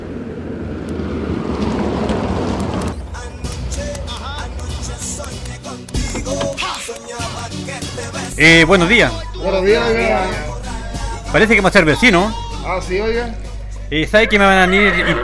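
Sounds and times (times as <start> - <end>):
red car approaching and arriving: 0.0 - 7.0, 7.6 - 15.2
speech: 8.4 - 10.5, 11.3 - 15.2
laughter: 14.1 - 15.2.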